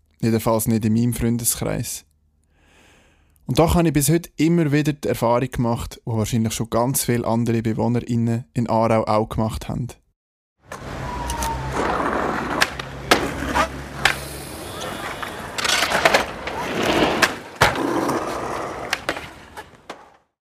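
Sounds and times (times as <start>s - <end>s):
speech: 0.2s - 2.1s, 3.5s - 10.0s
skateboards slamming onto pavement: 10.7s - 20.2s.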